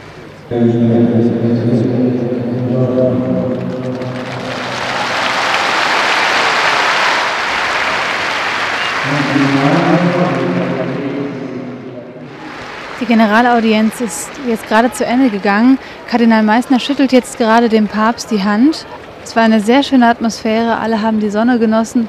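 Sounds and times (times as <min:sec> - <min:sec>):
speech: 0:00.5 - 0:02.1, 0:13.0 - 0:22.0
crowd cheering on Petersplatz: 0:03.0 - 0:20.3.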